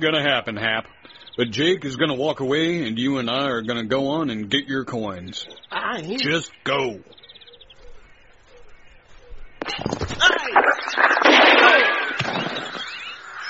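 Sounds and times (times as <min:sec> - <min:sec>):
speech: 0:00.0 - 0:07.2, 0:09.8 - 0:11.8
gunshot: 0:11.0 - 0:12.9.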